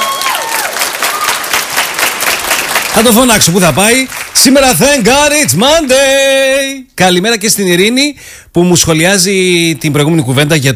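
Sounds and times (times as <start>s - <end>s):
crowd applauding: 0.0s - 5.9s
speech: 3.0s - 10.7s.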